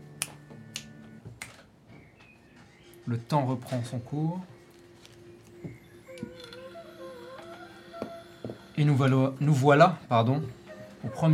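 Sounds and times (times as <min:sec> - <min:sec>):
finger snaps: 0:00.1 - 0:01.6
speech: 0:03.1 - 0:04.6, 0:08.8 - 0:11.3.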